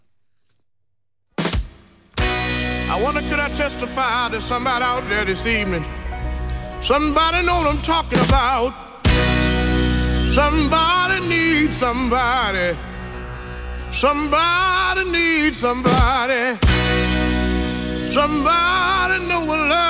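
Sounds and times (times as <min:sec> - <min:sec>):
band with bass and organ-like chords: 0:02.2 - 0:19.8
speech: 0:02.9 - 0:06.0, 0:06.8 - 0:08.8, 0:10.3 - 0:12.9, 0:13.9 - 0:17.2, 0:18.1 - 0:19.8
male lead singing gospel-style soul song: 0:02.9 - 0:06.1, 0:06.7 - 0:09.1, 0:10.2 - 0:13.0, 0:13.9 - 0:16.8, 0:18.0 - 0:19.8.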